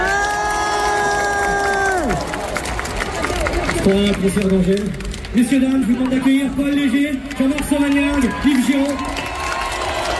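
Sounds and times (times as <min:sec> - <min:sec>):
audience applauding and cheering: 0:00.0 - 0:10.1
speech: 0:03.8 - 0:09.2.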